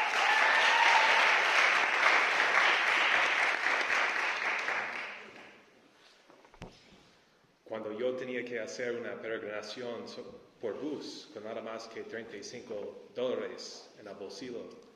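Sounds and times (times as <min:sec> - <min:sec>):
audience applause: 0:00.0 - 0:05.5
speech: 0:08.2 - 0:14.8.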